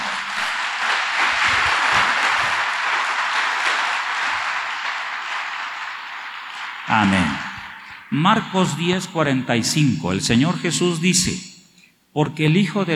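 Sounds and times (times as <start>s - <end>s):
crowd applauding: 0.0s - 8.8s
speech: 7.0s - 7.4s, 8.1s - 11.5s, 12.2s - 12.9s.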